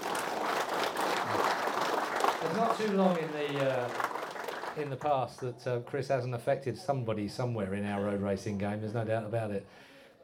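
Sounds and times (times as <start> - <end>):
audience applause: 0.0 - 5.5
speech: 2.5 - 4.1, 4.8 - 10.2.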